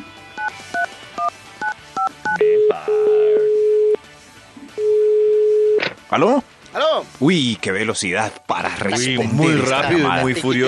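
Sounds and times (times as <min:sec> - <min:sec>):
phone number dialing beeps: 0:00.4 - 0:04.0
phone ringing tone: 0:00.4 - 0:04.0, 0:04.8 - 0:05.8
speech: 0:06.1 - 0:10.6.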